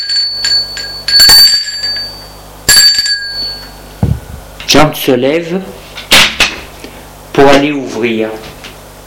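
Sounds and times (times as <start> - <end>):
doorbell ringing: 0.0 - 3.9
speech: 4.7 - 5.8, 7.4 - 8.5.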